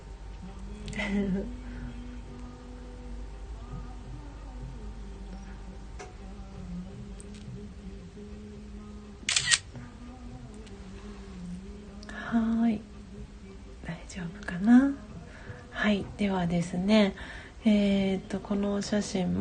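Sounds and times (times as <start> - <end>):
low hum: 0.0 - 18.5
speech: 1.1 - 1.6, 15.9 - 19.3
camera shutter click: 9.3 - 9.7.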